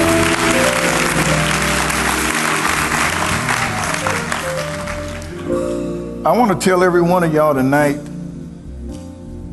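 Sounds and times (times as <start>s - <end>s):
audience clapping hands in praise: 0.0s - 5.5s
speech: 6.3s - 8.1s.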